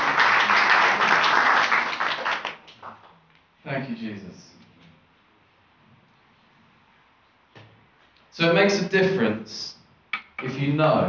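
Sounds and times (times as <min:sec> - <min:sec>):
audience applause: 0:00.0 - 0:03.1
speech: 0:03.7 - 0:04.6, 0:08.4 - 0:09.8, 0:10.4 - 0:11.0.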